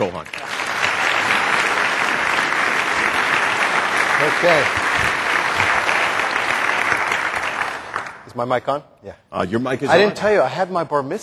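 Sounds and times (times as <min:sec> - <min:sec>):
speech: 0:00.0 - 0:00.5, 0:04.2 - 0:05.1, 0:08.4 - 0:11.2
audience applause: 0:00.0 - 0:08.3.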